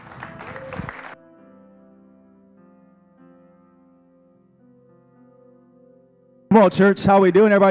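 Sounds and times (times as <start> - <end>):
church audience clapping: 0.0 - 1.2
speech: 6.5 - 7.6.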